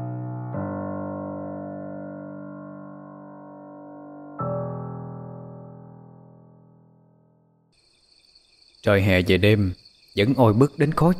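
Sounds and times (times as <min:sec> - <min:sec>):
cicadas buzzing on a summer night: 0:07.8 - 0:11.1
speech: 0:08.8 - 0:11.1.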